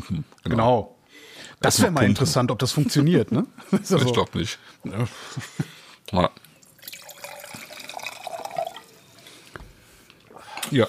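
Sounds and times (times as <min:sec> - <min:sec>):
speech: 0:00.0 - 0:01.0, 0:01.6 - 0:06.4
wine poured into a carafe: 0:06.7 - 0:09.2.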